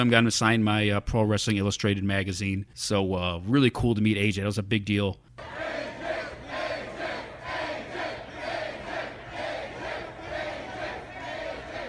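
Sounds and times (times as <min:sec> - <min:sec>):
speech: 0:00.0 - 0:05.6
large crowd chanting in unison for a wrestler: 0:05.4 - 0:11.8.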